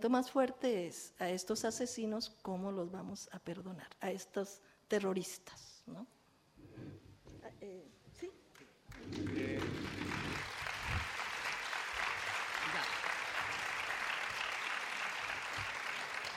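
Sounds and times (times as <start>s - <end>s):
speech: 0.0s - 8.4s, 9.0s - 10.2s
crowd applause: 8.9s - 16.3s.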